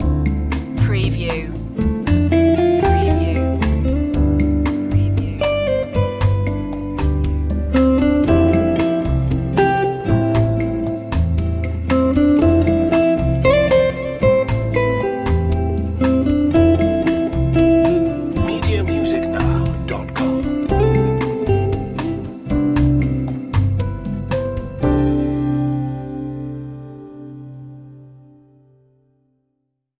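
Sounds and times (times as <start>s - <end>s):
moody bossa nova: 0.0s - 26.0s.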